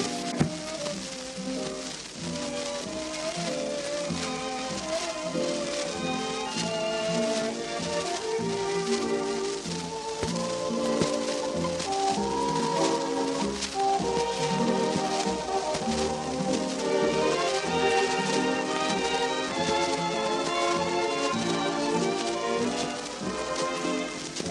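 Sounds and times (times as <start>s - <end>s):
waltz music: 0.0s - 24.4s.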